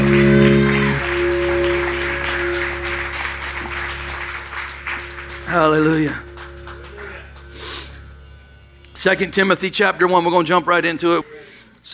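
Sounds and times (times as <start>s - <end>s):
audience applause: 0.0s - 8.0s
speech: 5.6s - 6.2s, 9.0s - 11.9s.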